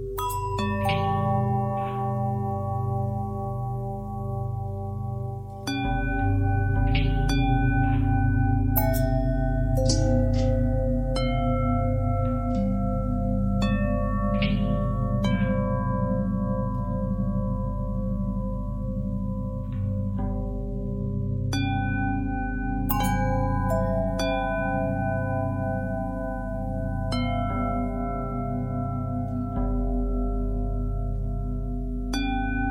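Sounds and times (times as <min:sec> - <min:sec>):
long bell harmonic twist: 0:00.2 - 0:32.6.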